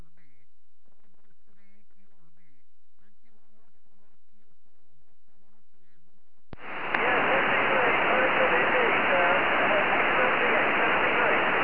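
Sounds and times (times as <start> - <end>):
70cm tropospheric radio signal: 6.6 - 11.6.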